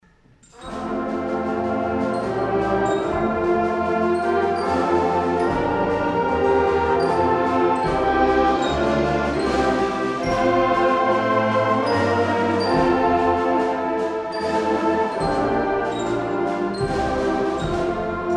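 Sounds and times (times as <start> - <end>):
Welsh chorale: 0.6 - 18.3.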